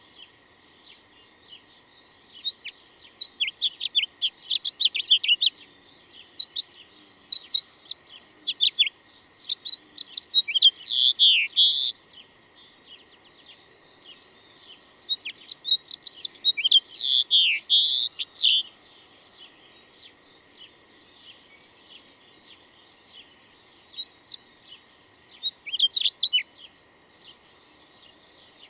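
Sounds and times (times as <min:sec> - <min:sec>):
bird song: 0:00.0 - 0:28.6.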